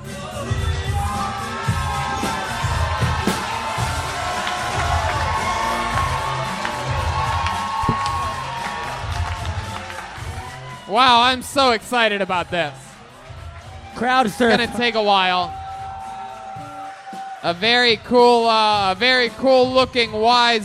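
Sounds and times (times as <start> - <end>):
audience cheering and whooping: 0.1 - 19.0
people clapping: 1.4 - 17.7
speech: 11.0 - 12.8, 14.0 - 15.6, 17.4 - 20.6.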